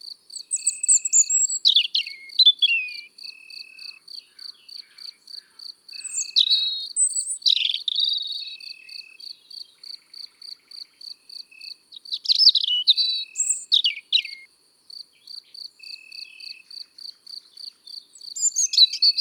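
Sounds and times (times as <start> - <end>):
cricket chirping: 0.0 - 19.1
European robin song: 0.4 - 5.3, 6.0 - 9.1, 11.6 - 14.5, 17.9 - 19.1.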